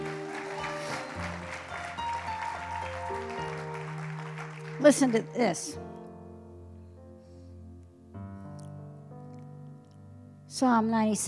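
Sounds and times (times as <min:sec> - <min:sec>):
audience clapping hands: 0:00.0 - 0:05.8
sustained organ-like chords: 0:00.0 - 0:07.2
speech: 0:04.8 - 0:05.9, 0:10.6 - 0:11.2.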